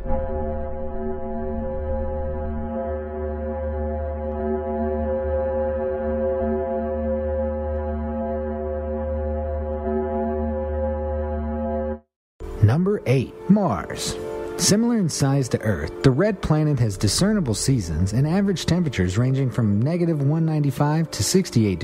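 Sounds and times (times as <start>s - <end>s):
simulated sound of Venus, deep steady drone with buzzing harmonics: 0.0s - 11.8s
speech: 13.0s - 21.8s.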